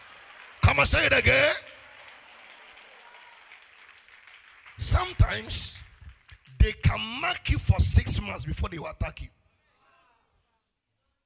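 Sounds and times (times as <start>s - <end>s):
crowd of people clapping their hands: 0.0s - 8.2s
speech: 0.8s - 1.8s, 4.8s - 5.9s, 6.6s - 9.4s.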